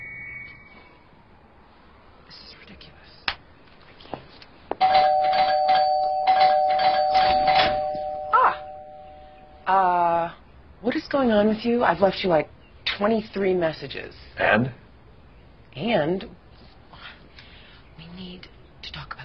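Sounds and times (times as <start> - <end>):
cell phone ringing: 4.8 - 9.7
speech: 11.1 - 14.8, 15.8 - 16.4.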